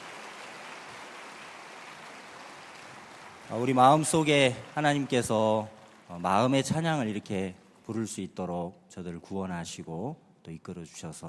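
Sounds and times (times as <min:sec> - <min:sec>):
applause for church choir: 0:00.0 - 0:07.3
speech: 0:03.5 - 0:11.2.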